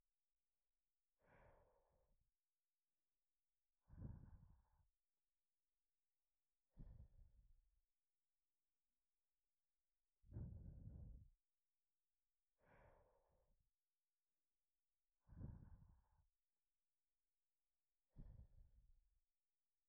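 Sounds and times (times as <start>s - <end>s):
breathing: 1.2s - 2.3s, 3.8s - 5.0s, 6.7s - 7.4s, 10.3s - 11.4s, 12.5s - 13.7s, 15.2s - 16.4s, 18.2s - 18.7s.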